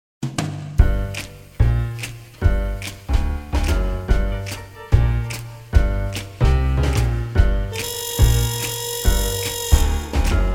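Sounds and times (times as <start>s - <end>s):
jazz music: 0.3s - 10.5s.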